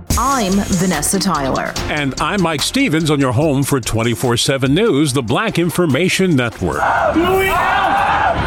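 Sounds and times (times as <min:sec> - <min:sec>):
speech: 0:00.2 - 0:08.0
man screaming in pain with a dog latched to his leg: 0:07.1 - 0:08.3.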